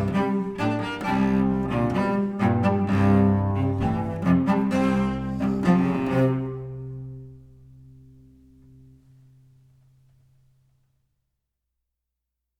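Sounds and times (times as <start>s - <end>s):
cello duo playing: 0.0s - 9.0s.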